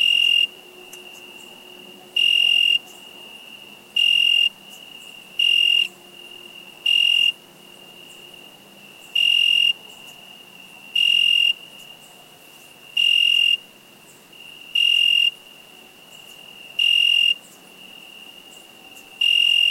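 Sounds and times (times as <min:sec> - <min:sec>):
cricket giving high-pitched trills: 0:00.0 - 0:19.6.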